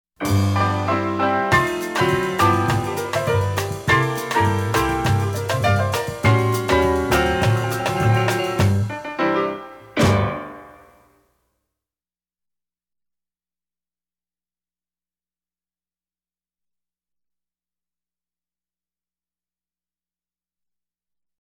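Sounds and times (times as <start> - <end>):
rolling piano: 0.2 - 11.0.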